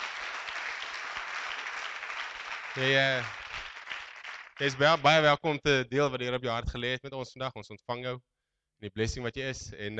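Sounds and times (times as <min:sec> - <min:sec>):
audience applauding: 0:00.0 - 0:05.1
speech: 0:02.8 - 0:03.4, 0:04.6 - 0:09.9.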